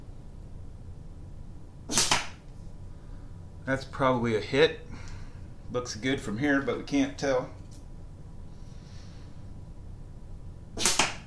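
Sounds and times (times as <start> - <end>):
dart shot at a 70 millimetre target from 5 metres: 1.9 - 2.4, 10.8 - 11.2
speech: 3.7 - 5.0, 5.7 - 7.6.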